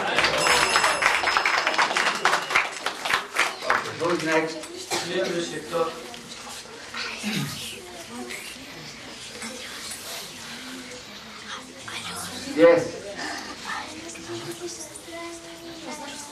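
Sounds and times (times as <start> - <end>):
group clapping: 0.0 - 5.0
speech: 4.0 - 6.0, 7.2 - 7.6, 12.6 - 13.0.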